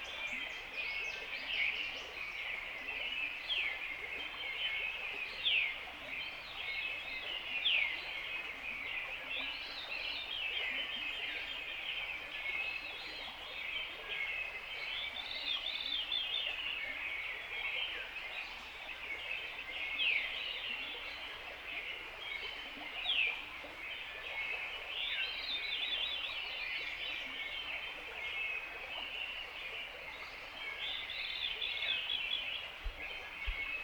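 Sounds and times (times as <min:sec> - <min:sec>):
mountain brook flowing: 0:00.0 - 0:33.8
birds: 0:21.8 - 0:33.8.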